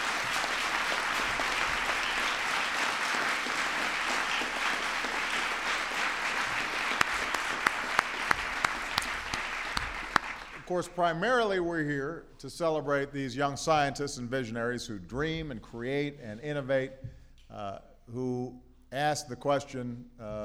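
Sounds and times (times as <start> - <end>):
audience applause: 0.0 - 10.7
speech: 10.7 - 20.4.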